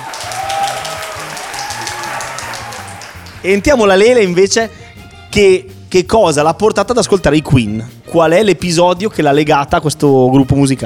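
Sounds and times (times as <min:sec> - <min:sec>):
audience applause: 0:00.0 - 0:03.8
speech: 0:03.4 - 0:10.8.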